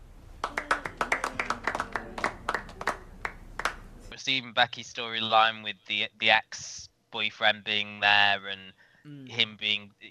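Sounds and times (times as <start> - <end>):
audience cheering: 0.4 - 3.7
speech: 4.2 - 10.0.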